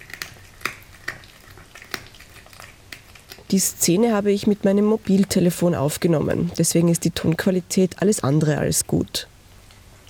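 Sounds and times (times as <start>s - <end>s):
cat crunching a mouse's bones while eating: 0.0s - 3.5s
speech: 3.5s - 9.3s.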